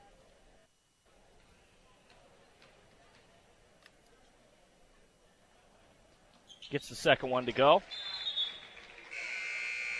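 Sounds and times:
speech: 0:06.6 - 0:08.1
referee's whistle at basketball game: 0:07.9 - 0:09.9.

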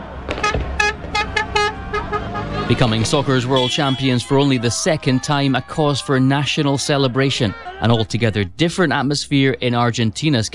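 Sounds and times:
car horns honking in a street celebration in Madrid after Spain's World Cup win: 0:00.3 - 0:04.9, 0:07.1 - 0:08.4
laughter: 0:01.7 - 0:08.9
speech: 0:02.7 - 0:10.5.

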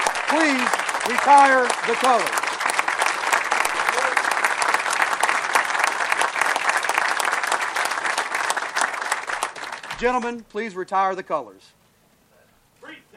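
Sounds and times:
applause: 0:00.0 - 0:10.4
speech: 0:00.3 - 0:02.4, 0:10.0 - 0:11.8.

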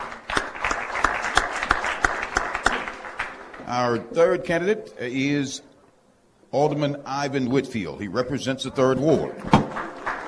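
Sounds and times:
audience applause: 0:00.0 - 0:03.6, 0:09.4 - 0:10.2
speech: 0:03.7 - 0:05.7, 0:06.5 - 0:09.6.

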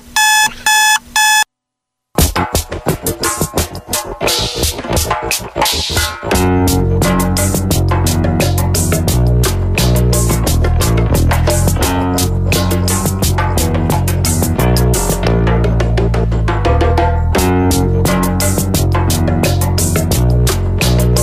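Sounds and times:
alarm clock beeping: 0:00.0 - 0:01.5
upbeat music with punchy drums: 0:02.2 - 0:21.2.

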